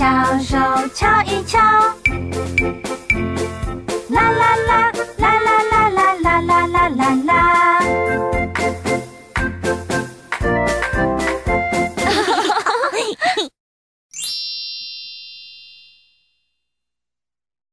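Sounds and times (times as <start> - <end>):
music: 0.0 - 12.3
laughter: 12.0 - 13.5.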